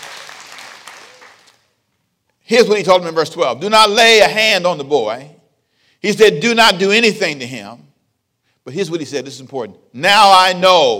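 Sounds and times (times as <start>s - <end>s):
audience clapping: 0.0s - 1.8s
speech: 2.5s - 5.4s, 6.0s - 7.8s, 8.7s - 10.9s.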